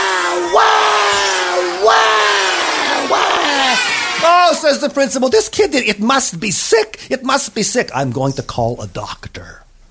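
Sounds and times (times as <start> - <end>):
voice imitating a baby's loud crying: 0.0 - 4.5
speech: 4.5 - 9.7.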